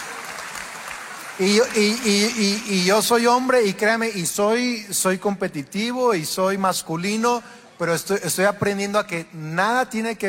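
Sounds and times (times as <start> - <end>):
women in an audience applauding: 0.0 - 3.5
speech: 1.4 - 10.2.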